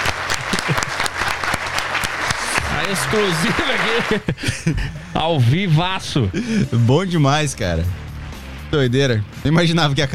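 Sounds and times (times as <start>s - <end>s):
applause for Saco Cheio TV: 0.0s - 4.3s
laughter: 0.0s - 6.9s
speech: 2.9s - 8.0s, 8.7s - 10.1s.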